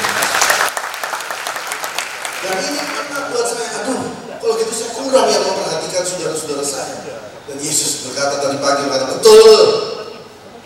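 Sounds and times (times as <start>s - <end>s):
audience applause: 0.0s - 3.8s
speech: 4.5s - 9.8s.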